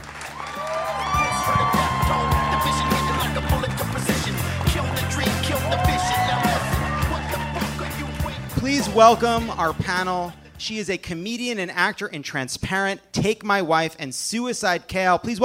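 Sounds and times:
studio audience applauding and cheering: 0.0 - 10.3
speech: 9.0 - 15.4.

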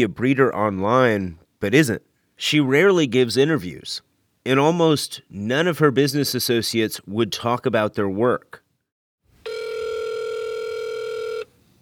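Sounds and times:
speech: 0.0 - 8.6
phone line ringing tone: 9.4 - 11.5.

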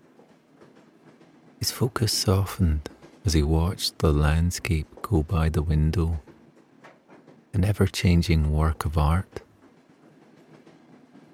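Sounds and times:
train wheels clicking and clacking over tracks: 0.0 - 11.3
speech: 1.6 - 6.3, 7.6 - 9.4.

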